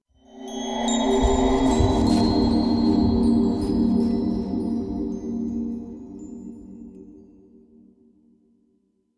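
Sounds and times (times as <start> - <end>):
vine bridge growing: 1.0 - 5.0.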